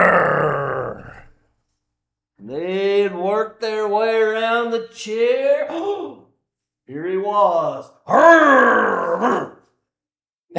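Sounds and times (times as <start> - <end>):
person imitating lion roar: 0.0 - 1.4, 8.1 - 9.6
speech: 2.5 - 6.2, 6.9 - 9.4.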